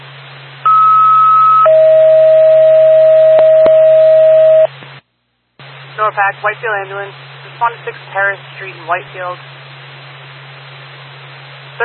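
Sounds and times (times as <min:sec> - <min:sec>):
constant low hum and hiss: 0:00.0 - 0:11.8
radio dispatch two-tone alert: 0:00.7 - 0:04.7
speech: 0:06.1 - 0:09.6.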